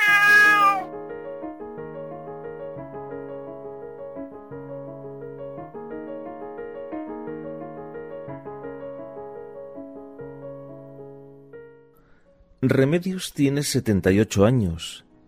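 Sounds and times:
cat meowing: 0:00.0 - 0:00.9
speech: 0:12.7 - 0:15.2.

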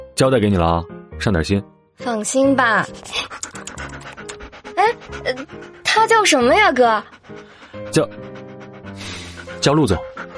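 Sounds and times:
speech: 0:00.2 - 0:03.4, 0:04.9 - 0:08.3, 0:09.6 - 0:10.1
dog panting on a leash: 0:02.3 - 0:10.3.

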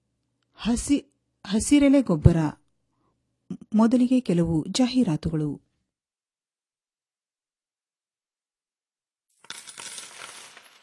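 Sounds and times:
speech: 0:00.6 - 0:02.6, 0:03.7 - 0:05.6
coins dropping and clinking: 0:09.3 - 0:10.8.

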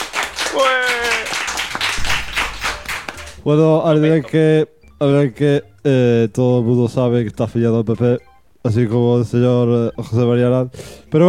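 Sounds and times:
applause: 0:00.0 - 0:03.4
speech: 0:00.6 - 0:00.9, 0:03.4 - 0:11.2.

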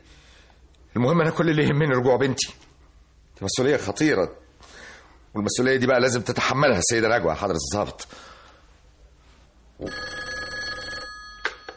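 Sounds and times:
speech: 0:01.0 - 0:02.7, 0:03.4 - 0:08.3, 0:09.8 - 0:10.0
telephone bell ringing: 0:09.8 - 0:11.7.

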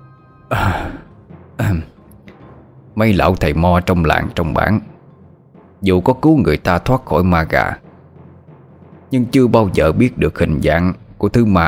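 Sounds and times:
speech: 0:00.5 - 0:01.0, 0:03.0 - 0:04.9, 0:05.8 - 0:07.8, 0:09.1 - 0:11.6
person coughing: 0:00.5 - 0:01.9.

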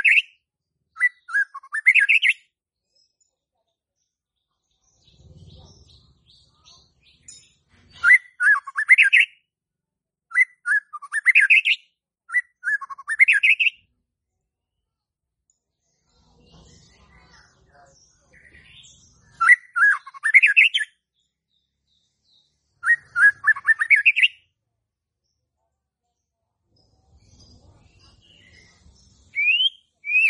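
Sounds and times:
white-rumped shama whistling song: 0:00.0 - 0:02.5, 0:07.1 - 0:09.5, 0:10.3 - 0:13.9, 0:18.4 - 0:21.0, 0:22.3 - 0:24.5, 0:28.3 - 0:30.2.

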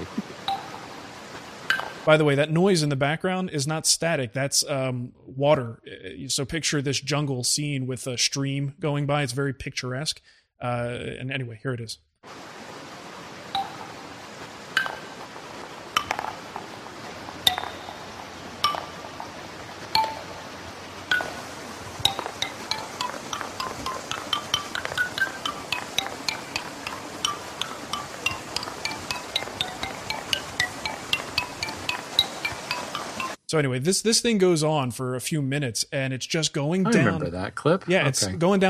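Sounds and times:
wooden ball pinging down little stands: 0:00.4 - 0:00.9, 0:01.6 - 0:02.1, 0:13.5 - 0:14.0, 0:14.7 - 0:15.3, 0:15.9 - 0:33.4
speech: 0:02.0 - 0:12.5, 0:33.5 - 0:38.6.

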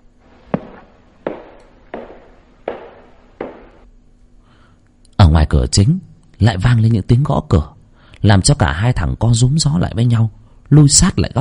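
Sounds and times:
footsteps on a wooden floor: 0:00.3 - 0:03.8
speech: 0:05.5 - 0:11.3.

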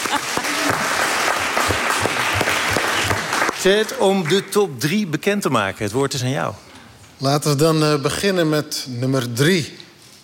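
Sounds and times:
audience applause at a poetry award event in a venue: 0:00.0 - 0:04.6
speech: 0:03.6 - 0:06.6, 0:07.2 - 0:09.8.

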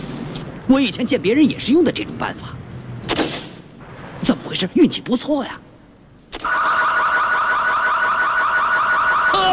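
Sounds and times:
speech: 0:00.7 - 0:02.6, 0:04.6 - 0:05.6
car alarm warbling: 0:06.4 - 0:09.5.

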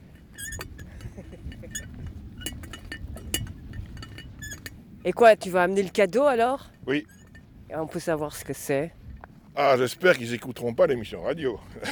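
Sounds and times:
teapot creaking: 0:00.0 - 0:04.8, 0:06.9 - 0:07.4
speech: 0:05.0 - 0:07.1, 0:07.7 - 0:09.0, 0:09.6 - 0:11.9.

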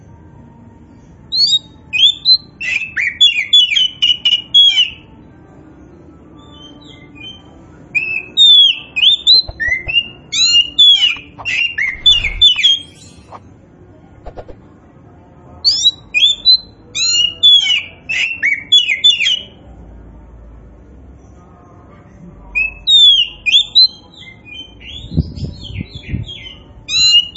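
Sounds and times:
Oriental magpie-robin singing: 0:00.9 - 0:05.1, 0:06.4 - 0:13.4, 0:15.6 - 0:19.6, 0:22.6 - 0:27.3.

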